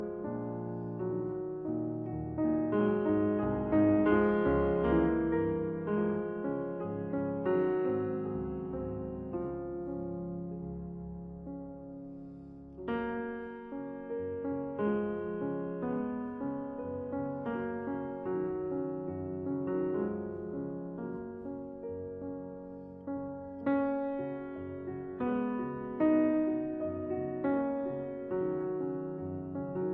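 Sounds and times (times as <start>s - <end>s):
romance piece in F sharp major: 0.0s - 29.9s.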